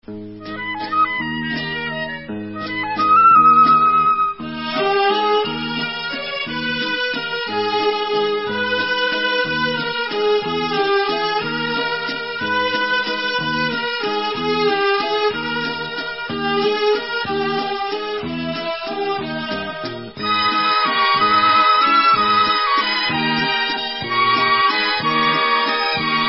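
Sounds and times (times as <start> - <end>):
instrumental folk music: 0.0 - 26.2.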